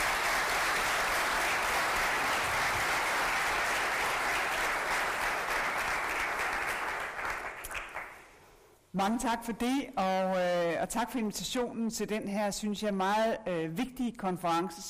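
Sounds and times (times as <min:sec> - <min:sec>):
conference audience applause welcoming Margrethe Vestager: 0:00.0 - 0:08.3
speech: 0:09.0 - 0:14.8.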